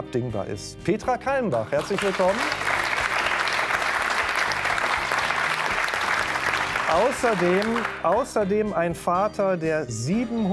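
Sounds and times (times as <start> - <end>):
speech: 0.1 - 2.7, 6.9 - 10.5
studio audience applause: 1.5 - 8.3.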